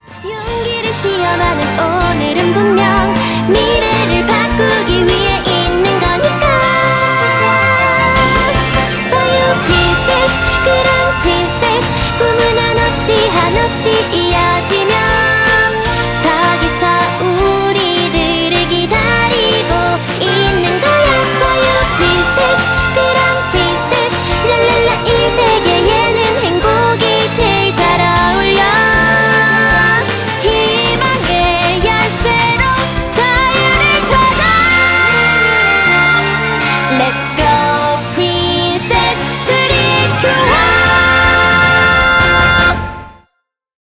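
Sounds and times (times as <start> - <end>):
princess-style anime theme song: 0.0 - 43.3.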